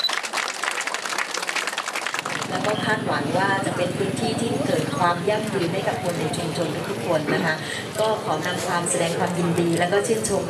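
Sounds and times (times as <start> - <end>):
audience applause: 0.0 - 2.7
speech: 2.5 - 10.4.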